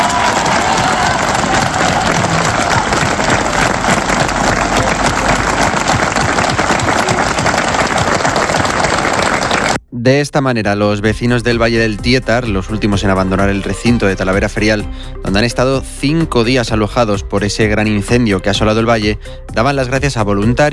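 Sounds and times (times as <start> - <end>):
crowd applause and cheering: 0.0 - 9.8
speech: 10.0 - 20.7.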